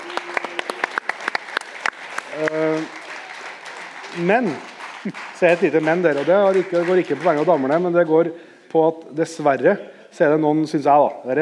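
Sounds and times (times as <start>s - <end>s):
applause: 0.0s - 8.8s
speech: 2.4s - 3.0s, 4.2s - 11.3s.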